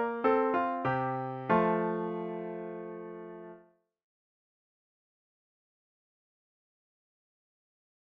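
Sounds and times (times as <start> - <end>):
Christmas carol on piano: 0.0 - 3.7.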